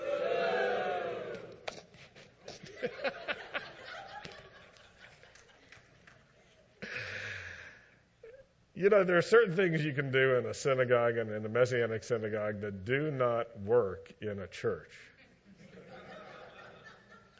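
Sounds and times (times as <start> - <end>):
crowd booing and jeering: 0.0 - 1.6
laughter: 2.4 - 7.3, 15.2 - 17.3
speech: 8.8 - 15.1.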